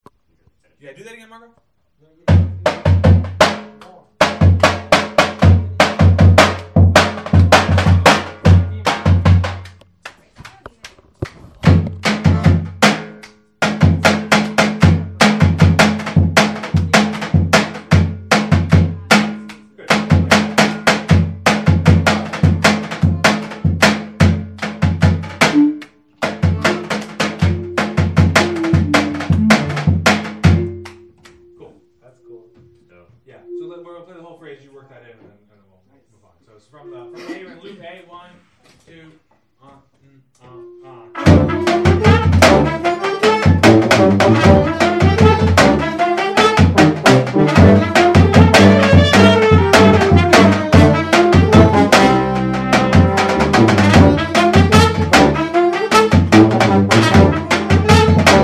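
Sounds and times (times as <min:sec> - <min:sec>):
drum hits at a rehearsal: 0:02.3 - 0:09.6, 0:11.5 - 0:31.5, 0:41.2 - 0:58.4.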